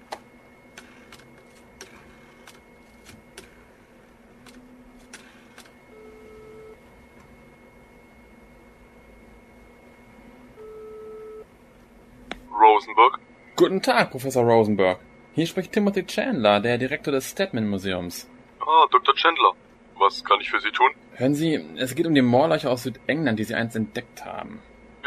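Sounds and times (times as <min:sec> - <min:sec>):
steady hum: 0:00.0 - 0:25.0
telephone ring or dial-tone bursts: 0:05.9 - 0:06.8, 0:10.6 - 0:11.4
speech: 0:12.8 - 0:24.7.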